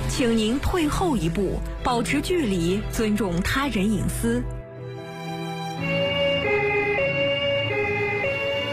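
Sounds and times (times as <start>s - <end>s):
speech: 0.1s - 4.5s
emergency vehicle siren: 5.8s - 8.7s.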